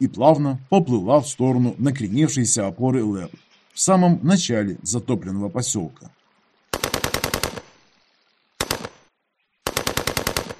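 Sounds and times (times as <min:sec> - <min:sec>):
speech: 0:00.0 - 0:06.2
machine gun bursts: 0:06.7 - 0:07.7, 0:08.6 - 0:09.0, 0:09.7 - 0:10.5.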